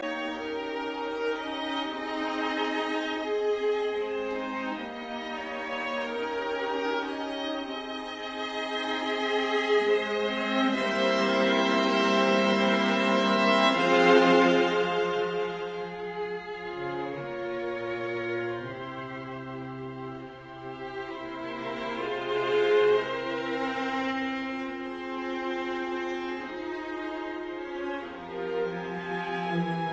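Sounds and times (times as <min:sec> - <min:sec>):
string quartet playing: 0:00.0 - 0:29.9.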